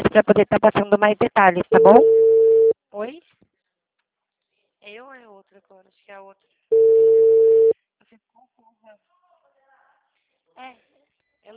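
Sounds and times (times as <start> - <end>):
speech: 0.2 - 2.4, 3.0 - 3.4, 4.9 - 9.2, 10.6 - 11.5
telephone call tone: 1.7 - 2.7, 6.7 - 7.7.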